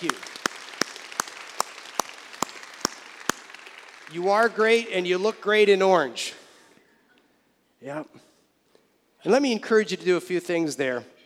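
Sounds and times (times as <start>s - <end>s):
speech: 0.0s - 0.3s, 4.1s - 6.4s, 7.8s - 8.3s, 9.2s - 11.2s
audience applause: 0.0s - 5.8s.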